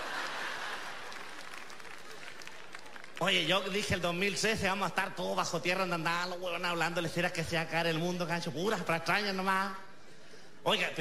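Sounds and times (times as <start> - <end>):
audience applause: 0.0 - 3.4
speech: 3.2 - 9.8, 10.6 - 10.9.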